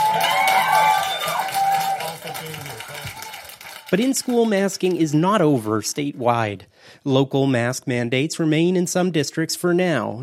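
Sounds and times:
whoops and shouts: 0:00.0 - 0:02.3
crowd of parents cheering: 0:00.0 - 0:06.2
speech: 0:03.9 - 0:10.2.

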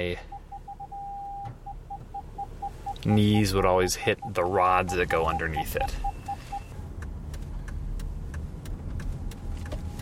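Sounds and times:
speech: 0:00.0 - 0:00.4, 0:03.0 - 0:06.1
car engine and road rumble inside a car driven on left-side hand controls: 0:00.0 - 0:10.0
light regular clicks: 0:06.2 - 0:10.0.

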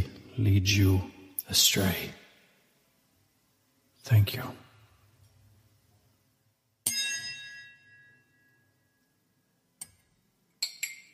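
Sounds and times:
speech: 0:00.4 - 0:02.2, 0:04.0 - 0:04.6
glass clinks: 0:06.8 - 0:09.1, 0:10.6 - 0:11.1
glass struck with a hard object: 0:06.8 - 0:09.1.

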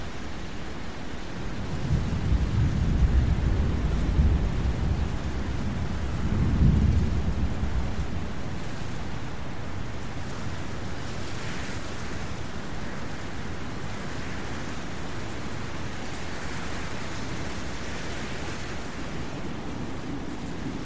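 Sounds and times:
steady rain: 0:00.0 - 0:20.8
deep rolling thunder: 0:01.8 - 0:08.3.

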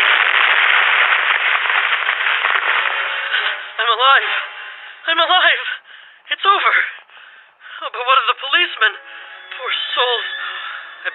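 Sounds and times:
car crashing and exploding in ravine: 0:00.0 - 0:04.6
speech: 0:04.0 - 0:07.0, 0:07.8 - 0:11.1.

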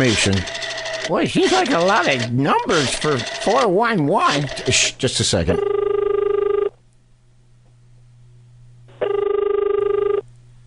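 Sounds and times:
speech: 0:00.0 - 0:05.8
faint low hum on the telephone line: 0:05.4 - 0:10.6
telephone ringback tone: 0:05.6 - 0:06.7, 0:09.0 - 0:10.2.

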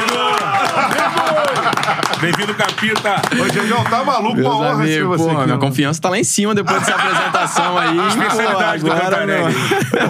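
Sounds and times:
loud excited voices and cheering calls: 0:00.0 - 0:02.4
studio hosts clapping: 0:00.0 - 0:04.6
laughter: 0:00.1 - 0:04.4, 0:06.7 - 0:10.0
speech: 0:01.4 - 0:10.0.

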